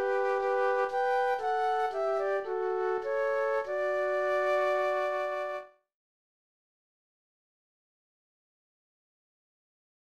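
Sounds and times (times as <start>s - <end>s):
classical bourree flute duet: 0.0s - 5.8s.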